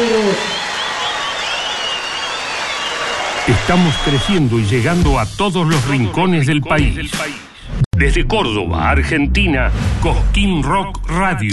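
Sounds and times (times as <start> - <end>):
speech: 0.0 - 0.6, 3.5 - 7.4, 8.0 - 11.5
crowd applauding a children's choir: 0.0 - 4.6.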